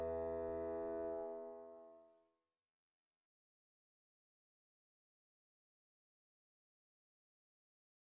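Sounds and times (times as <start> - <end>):
solo piano: 0.0 - 1.9.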